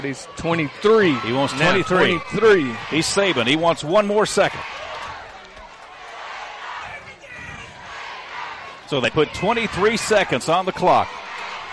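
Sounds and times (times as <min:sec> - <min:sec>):
speech: 0:00.0 - 0:04.8, 0:08.9 - 0:11.2
Raider fans chanting in a stadium: 0:00.0 - 0:11.7.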